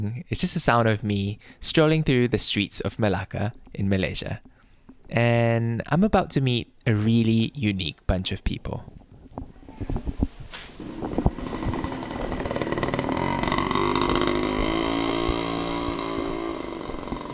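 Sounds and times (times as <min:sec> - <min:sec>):
speech: 0:00.0 - 0:04.5, 0:05.1 - 0:09.0
motorbike passing on a street in Melaka, Malaysia: 0:10.7 - 0:17.3.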